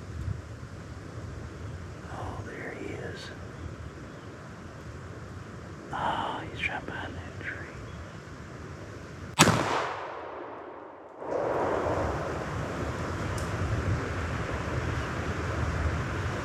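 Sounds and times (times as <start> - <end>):
rumbling wind: 0.0 - 16.4
rifle shot during a hunt: 9.4 - 12.6.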